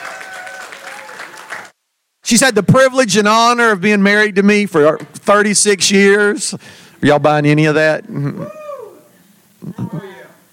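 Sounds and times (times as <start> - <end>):
crowd clapping: 0.0 - 1.8
speech: 2.3 - 8.6.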